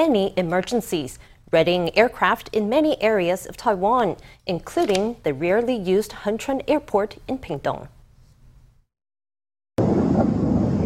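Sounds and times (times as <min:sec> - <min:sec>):
speech: 0:00.0 - 0:08.0
missile launch roaring through the sky: 0:09.8 - 0:10.8.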